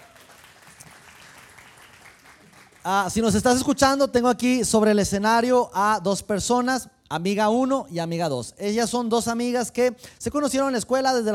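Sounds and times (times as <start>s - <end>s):
crowd clapping: 0.0s - 3.6s
speech: 2.8s - 11.3s.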